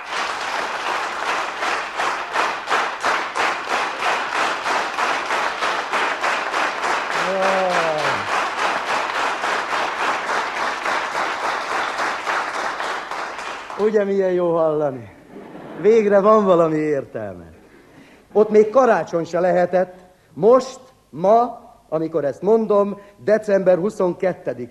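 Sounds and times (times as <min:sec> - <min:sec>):
thunderous crowd applause: 0:00.0 - 0:14.1
voice crying out: 0:07.2 - 0:08.3
speech: 0:13.9 - 0:15.2, 0:15.8 - 0:17.6, 0:18.4 - 0:24.6.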